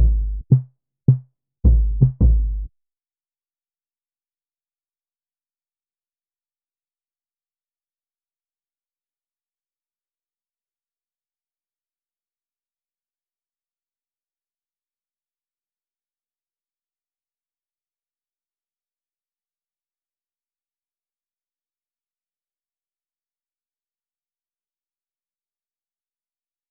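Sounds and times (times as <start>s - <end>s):
80 BPM D major RnB percussion loop: 0.0s - 0.6s, 1.7s - 2.7s.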